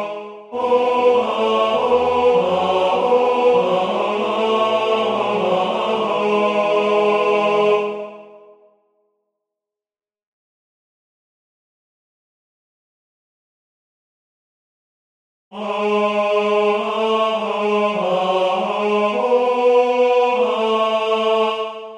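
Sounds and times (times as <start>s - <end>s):
tenor singing: 0.0s - 8.5s, 15.6s - 21.9s.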